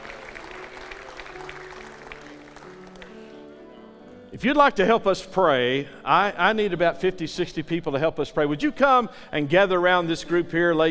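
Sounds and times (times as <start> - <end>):
church audience applause: 0.0 - 3.6
speech: 4.3 - 10.8.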